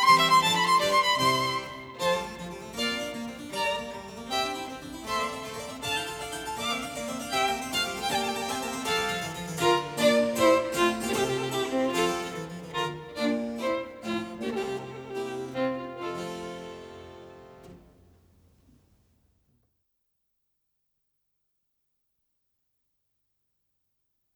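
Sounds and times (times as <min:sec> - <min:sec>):
violin sonata in F major allegro: 0:00.0 - 0:17.8.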